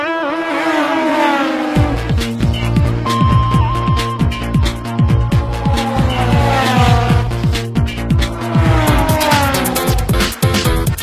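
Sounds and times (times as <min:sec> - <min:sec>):
motor drone: 0:00.2 - 0:10.8.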